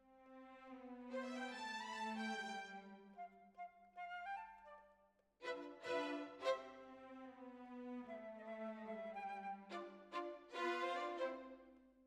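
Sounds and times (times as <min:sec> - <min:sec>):
violins: 0:00.0 - 0:03.2, 0:05.4 - 0:11.7.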